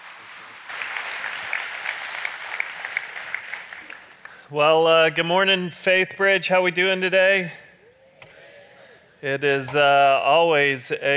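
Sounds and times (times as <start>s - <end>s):
church congregation applauding a guest teacher: 0.0s - 4.6s
speech: 4.5s - 7.6s, 9.2s - 11.1s.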